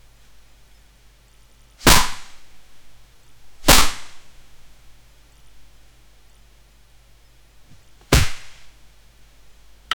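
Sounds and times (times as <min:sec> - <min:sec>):
superhero fight sounds: 0:08.1 - 0:08.6.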